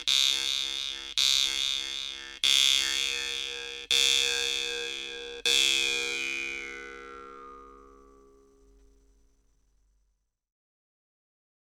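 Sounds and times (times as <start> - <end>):
jew's harp melody: 0.0 - 8.6.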